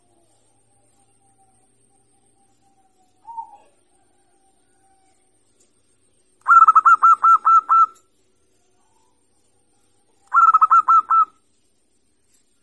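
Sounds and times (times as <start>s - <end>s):
zebra dove cooing: 3.2s - 5.0s, 6.4s - 8.0s, 10.2s - 11.4s.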